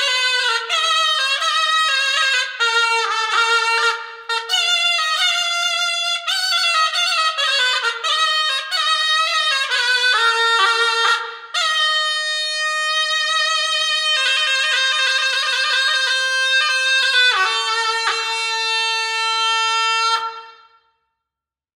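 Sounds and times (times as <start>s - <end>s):
zurna: 0.0s - 21.0s.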